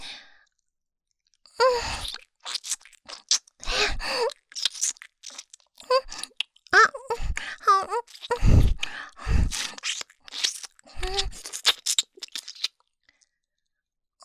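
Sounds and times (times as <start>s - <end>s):
ASMR ear licking sounds: 1.7s - 12.8s.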